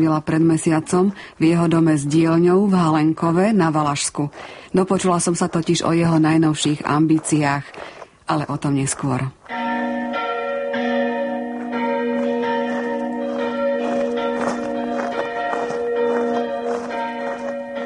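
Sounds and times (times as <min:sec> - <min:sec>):
speech: 0:00.0 - 0:09.5
several large church bells pealing festively: 0:09.5 - 0:17.8.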